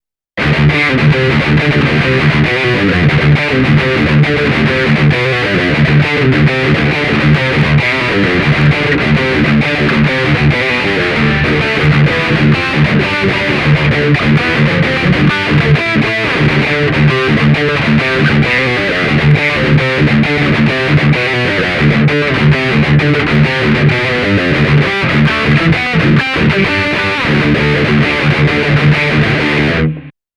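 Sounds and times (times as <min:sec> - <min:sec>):
metal riff: 0:00.4 - 0:30.1.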